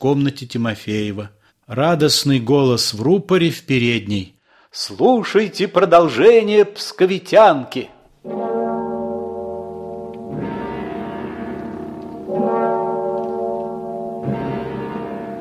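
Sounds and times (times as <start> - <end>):
speech: 0.0 - 8.4
church bells tolling: 8.2 - 15.4.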